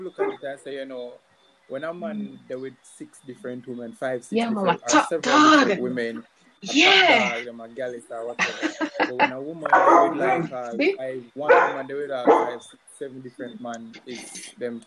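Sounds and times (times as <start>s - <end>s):
laughter: 0.0s - 1.1s, 1.7s - 14.8s
speech: 0.0s - 14.8s
dog barking and yipping: 9.7s - 10.8s, 11.5s - 12.6s.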